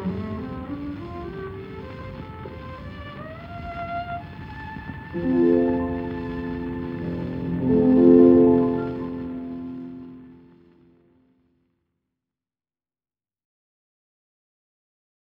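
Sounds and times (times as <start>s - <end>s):
cello melody: 0.0s - 10.6s.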